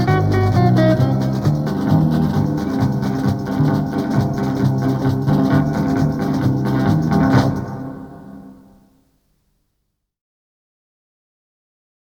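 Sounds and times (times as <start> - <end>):
instrumental music: 0.0 - 9.0.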